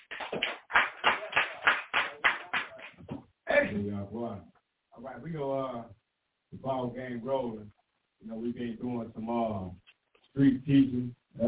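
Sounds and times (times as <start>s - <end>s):
audience clapping: 0.0s - 3.0s
speech: 3.8s - 11.4s.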